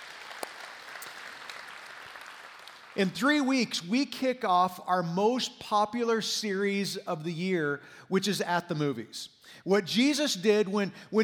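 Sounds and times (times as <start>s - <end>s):
congregation applauding at a church service: 0.0s - 3.5s
speech: 3.0s - 11.2s.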